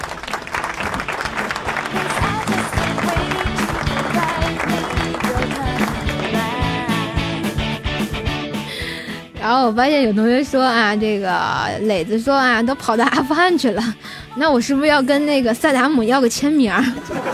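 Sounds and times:
crowd applauding: 0.0s - 7.7s
speech: 9.5s - 17.3s.

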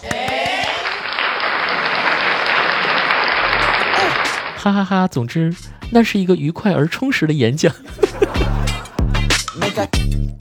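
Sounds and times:
audience applause: 0.0s - 4.7s
laughter: 1.4s - 4.5s, 7.6s - 9.2s
speech: 4.6s - 8.4s, 9.8s - 10.2s.

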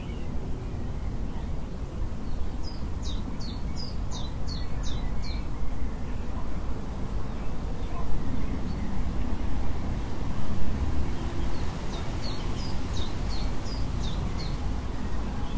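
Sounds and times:
wind rustling bamboo leaves: 0.0s - 15.5s.

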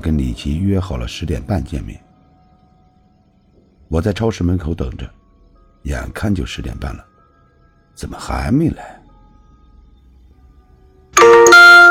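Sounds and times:
speech: 0.0s - 2.1s, 3.9s - 5.2s, 5.8s - 7.1s, 8.0s - 9.0s
phone text message notification chime: 11.2s - 11.9s.

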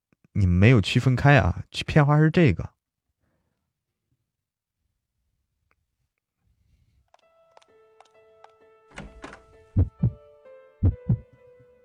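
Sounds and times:
speech: 0.4s - 2.7s
baby's heartbeat: 9.8s - 10.2s, 10.8s - 11.3s.

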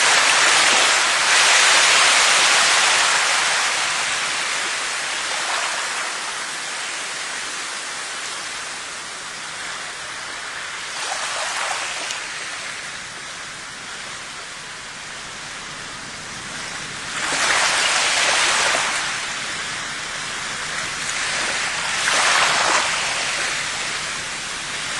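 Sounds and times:
rain: 0.0s - 24.9s
sea with surges of water: 0.0s - 24.9s.

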